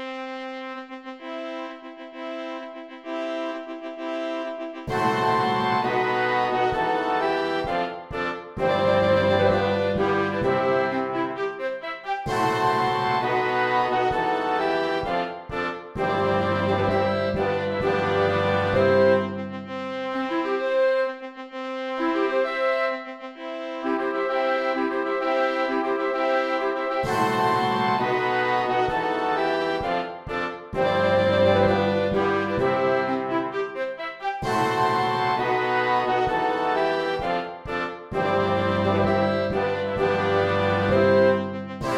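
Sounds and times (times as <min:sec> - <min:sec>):
wedding march music: 0:00.1 - 0:21.0, 0:22.0 - 0:41.9.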